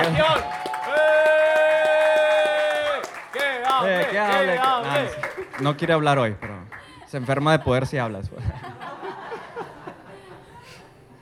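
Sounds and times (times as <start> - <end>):
audience applause: 0.0 - 7.0
speech: 5.0 - 6.5, 7.1 - 8.7
laughter: 6.7 - 11.2.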